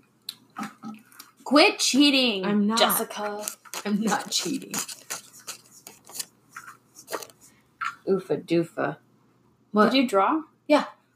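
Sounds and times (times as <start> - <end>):
speech: 1.5 - 5.0, 8.1 - 9.0, 9.7 - 11.0
small paper slip rustling and crinkling as it is folded back up: 3.0 - 7.5.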